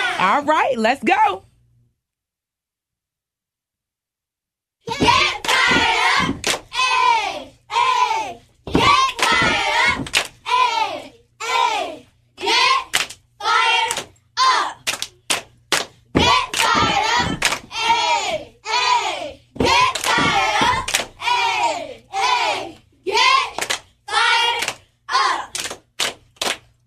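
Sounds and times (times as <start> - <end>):
cheerleaders performing a cheer: 0.0 - 0.5, 4.8 - 15.2, 16.0 - 25.8
speech: 0.2 - 1.5
hands clapping: 5.4 - 6.7, 9.0 - 10.4, 12.9 - 13.2, 14.8 - 17.7, 19.7 - 21.2, 23.5 - 23.9, 24.6 - 24.8, 25.5 - 26.7.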